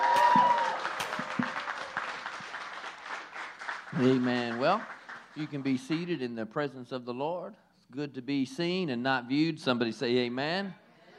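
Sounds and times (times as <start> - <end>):
audience clapping: 0.0 - 6.2
speech: 4.0 - 10.8.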